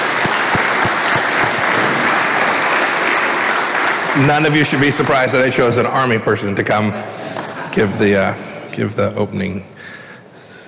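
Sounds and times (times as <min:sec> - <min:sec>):
room full of people clapping: 0:00.0 - 0:06.0
speech: 0:04.2 - 0:09.7, 0:10.4 - 0:10.6.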